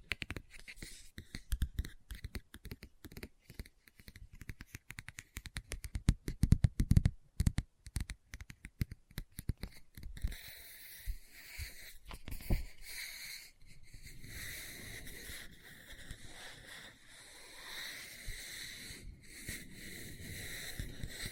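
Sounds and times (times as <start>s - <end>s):
fingers tapping on a book: 0.0s - 10.4s
scratching across a book cover: 0.1s - 6.1s, 8.4s - 21.3s.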